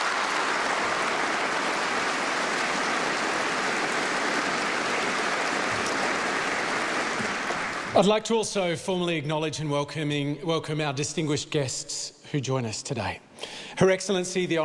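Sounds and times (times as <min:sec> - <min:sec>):
audience clapping in a hall at a formal ceremony: 0:00.0 - 0:08.3
speech: 0:08.0 - 0:14.6.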